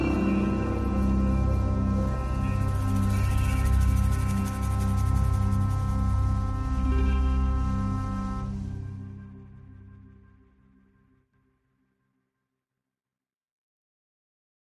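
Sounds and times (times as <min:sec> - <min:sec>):
tense music loop: 0:00.0 - 0:10.5.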